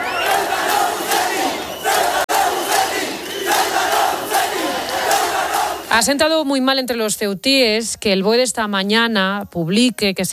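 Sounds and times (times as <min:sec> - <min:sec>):
protesters shouting and chanting: 0:00.0 - 0:06.2
speech: 0:06.0 - 0:10.3.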